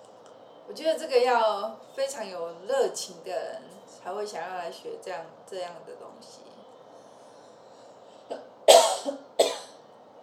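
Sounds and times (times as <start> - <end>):
speech: 0.7 - 6.5
coughing: 8.3 - 9.8.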